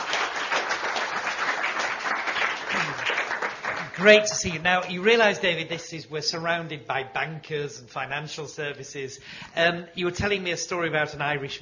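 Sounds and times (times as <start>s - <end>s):
audience applause welcoming a speaker: 0.0s - 4.3s
speech: 4.0s - 11.5s.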